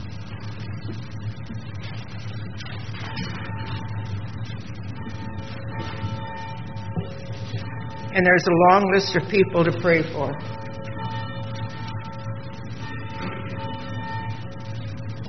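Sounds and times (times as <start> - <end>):
church bell ringing: 3.0 - 4.1, 4.8 - 15.2
speech: 8.2 - 10.6.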